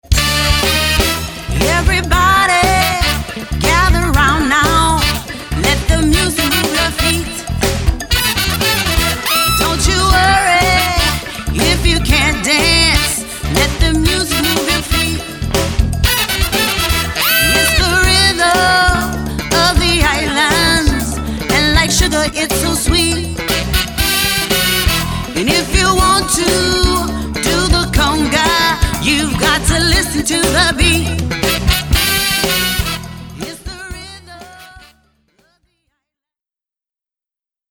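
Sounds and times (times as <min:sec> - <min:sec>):
conga: 0:00.0 - 0:35.0.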